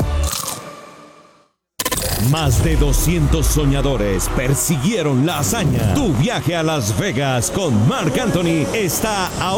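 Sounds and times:
crunchy peanut snack being bitten: 0.2s - 0.7s
speech: 2.2s - 9.5s.

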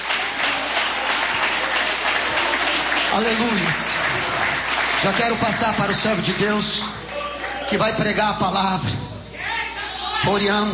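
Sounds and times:
audience clapping hands: 0.0s - 8.2s
speech: 3.2s - 4.4s, 5.0s - 7.0s, 7.7s - 9.0s, 10.2s - 10.7s.

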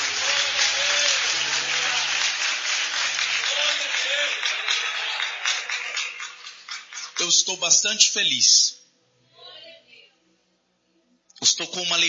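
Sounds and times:
audience applauding: 0.0s - 7.5s
speech: 7.4s - 8.8s, 11.6s - 12.0s.

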